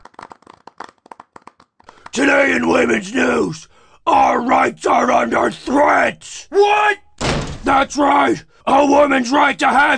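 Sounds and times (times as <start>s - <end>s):
clapping: 0.0s - 2.1s
speech: 2.2s - 7.0s, 7.7s - 9.9s.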